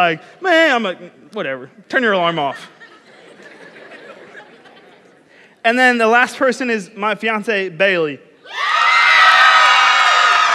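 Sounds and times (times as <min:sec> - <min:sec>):
speech: 0:00.0 - 0:02.8, 0:05.6 - 0:08.6
laughter: 0:02.3 - 0:05.5
crowd cheering: 0:08.5 - 0:10.5.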